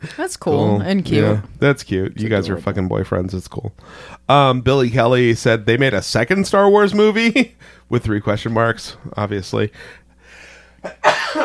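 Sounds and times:
speech: 0.0s - 10.0s, 10.8s - 11.4s
sneeze: 11.0s - 11.4s.

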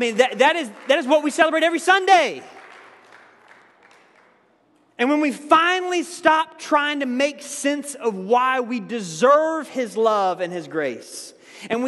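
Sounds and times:
speech: 0.0s - 2.6s, 5.0s - 11.8s
audience applause: 0.0s - 4.5s.

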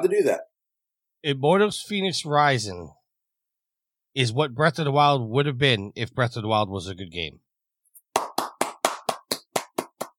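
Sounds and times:
speech: 0.0s - 0.5s, 1.2s - 3.0s, 4.2s - 7.4s
person clapping: 8.1s - 10.1s.

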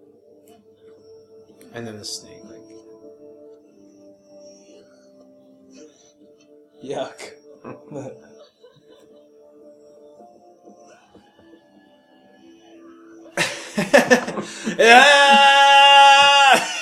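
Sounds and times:
speech: 1.7s - 2.5s, 6.8s - 8.2s, 14.0s - 15.5s
laughter: 7.7s - 9.6s, 13.4s - 16.7s
victorious yell: 14.6s - 16.7s.

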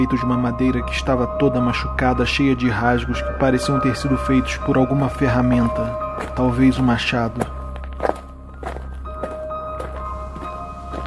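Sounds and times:
speech: 0.0s - 7.5s
footsteps in thin-soled slippers climbing loose wooden stairs: 7.4s - 11.0s.

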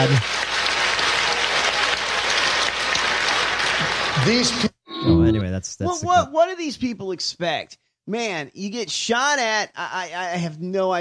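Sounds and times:
speech: 0.0s - 0.5s, 4.2s - 10.9s
standing ovation applause from crowd: 0.0s - 4.7s.

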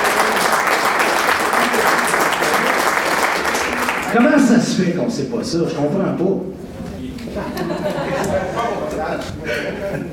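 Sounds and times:
audience applause: 0.0s - 4.2s
speech: 4.1s - 6.7s, 9.0s - 10.1s
laughter: 7.2s - 10.1s.

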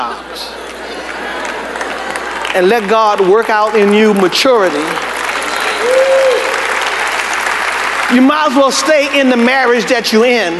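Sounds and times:
speech: 0.0s - 0.6s, 2.6s - 5.1s, 8.1s - 10.5s
audience clapping: 0.0s - 10.3s.

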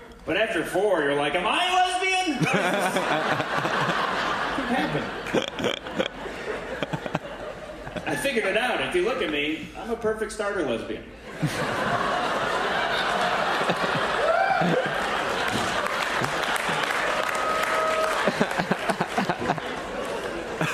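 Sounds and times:
speech: 0.2s - 3.9s, 8.2s - 12.3s
laughter: 2.3s - 8.7s, 11.2s - 20.7s
audience applause: 2.5s - 4.6s, 11.8s - 20.7s.

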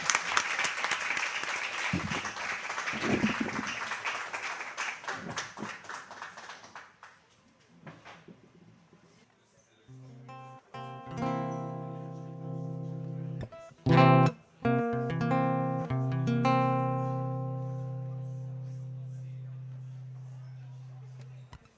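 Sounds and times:
audience applause: 0.0s - 7.2s
sustained instrumental notes: 9.9s - 21.3s.

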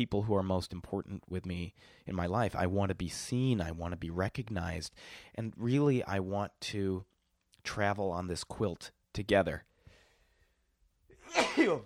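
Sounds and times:
speech: 0.0s - 9.7s, 11.3s - 11.8s
person sneezing: 11.1s - 11.8s.

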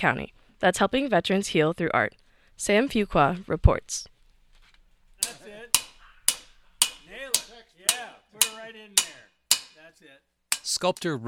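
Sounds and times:
speech: 0.0s - 4.1s, 10.0s - 11.2s
hammering steel on an anvil: 5.2s - 9.9s, 10.5s - 11.2s.

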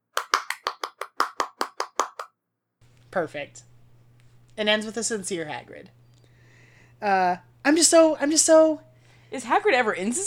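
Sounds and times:
applause: 0.2s - 2.3s
speech: 3.1s - 3.7s, 4.6s - 6.0s, 7.0s - 10.2s.

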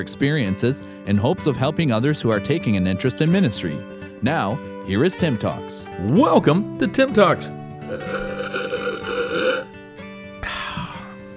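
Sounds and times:
speech: 0.0s - 8.2s
slurping coffee from a metal mug: 7.8s - 9.8s.

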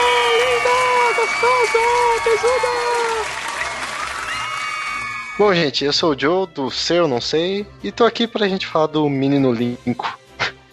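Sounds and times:
round of applause: 0.0s - 5.5s
speech: 2.2s - 3.0s, 5.4s - 10.2s.

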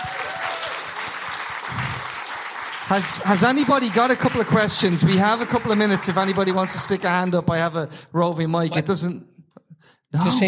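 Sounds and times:
crowd clapping: 0.0s - 7.8s
speech: 2.9s - 9.3s, 10.1s - 10.4s.

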